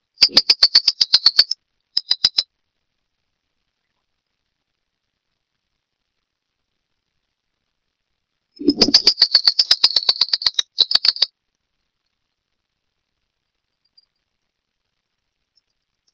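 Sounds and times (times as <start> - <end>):
Phleochryptes melanops calling: 0.2 - 2.4, 8.6 - 11.3.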